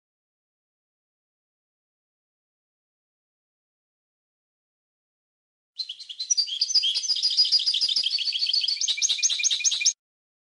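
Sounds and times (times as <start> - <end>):
European goldfinch song: 5.8 - 10.0.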